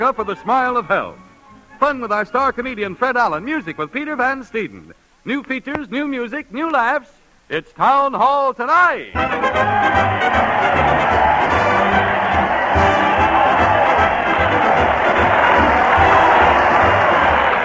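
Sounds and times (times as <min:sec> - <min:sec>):
speech: 0:00.0 - 0:01.2, 0:01.8 - 0:10.7
studio crowd cheering: 0:09.2 - 0:17.6.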